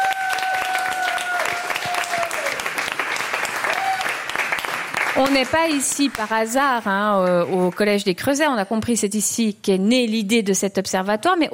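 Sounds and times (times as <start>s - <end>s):
audience applause: 0.0s - 7.8s
speech: 5.2s - 11.5s.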